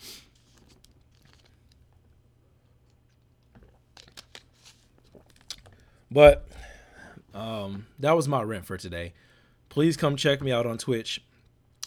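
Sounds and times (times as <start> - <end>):
speech: 6.1 - 6.5, 7.4 - 11.3
person drinking water: 6.3 - 6.9.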